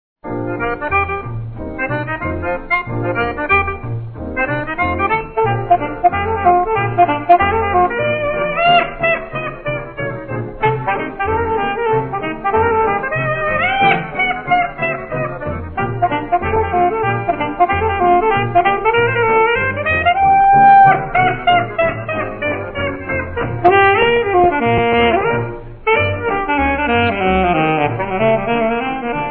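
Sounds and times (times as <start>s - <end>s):
alto saxophone solo scherzando: 0.4s - 29.2s.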